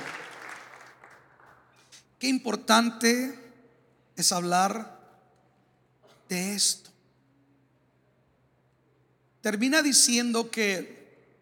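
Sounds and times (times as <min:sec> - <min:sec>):
audience applause: 0:00.0 - 0:01.9
speech: 0:02.2 - 0:03.4, 0:04.2 - 0:05.0, 0:06.3 - 0:06.9, 0:09.4 - 0:11.0.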